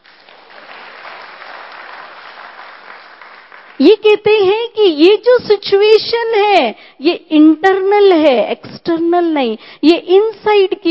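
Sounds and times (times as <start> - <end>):
audience clapping: 0.0 - 4.1
speech: 3.8 - 10.9.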